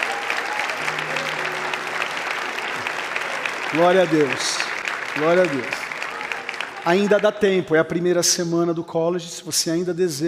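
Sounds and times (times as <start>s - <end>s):
audience applauding: 0.0s - 8.0s
speech: 3.7s - 5.8s, 6.8s - 10.2s.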